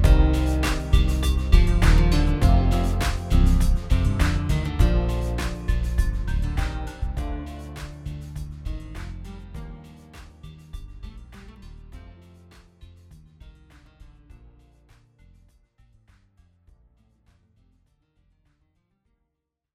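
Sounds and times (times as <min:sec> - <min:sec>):
rhythm beat at 120 bpm: 0:00.0 - 0:14.2.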